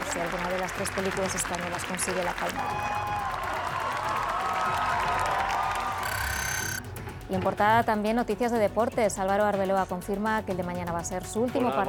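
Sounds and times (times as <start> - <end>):
large audience applause: 0.0 - 6.8
speech: 0.2 - 3.2, 7.3 - 11.8
faint cheers: 2.6 - 6.8.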